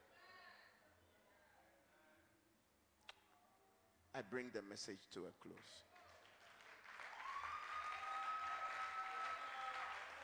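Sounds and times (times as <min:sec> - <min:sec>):
speech: 0:04.2 - 0:05.9
audience clapping: 0:05.6 - 0:10.2.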